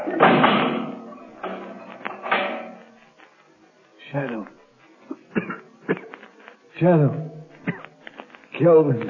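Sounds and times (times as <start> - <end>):
heavy steel door slamming shut: 0.1 - 1.6, 2.2 - 2.8
speech: 4.1 - 4.6, 6.8 - 7.2, 8.6 - 9.0.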